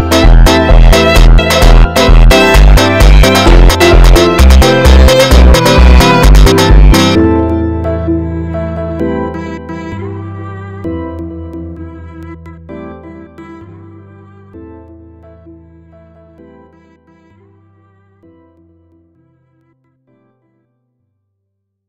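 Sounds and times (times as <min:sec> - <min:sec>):
funk music: 0:00.0 - 0:14.9.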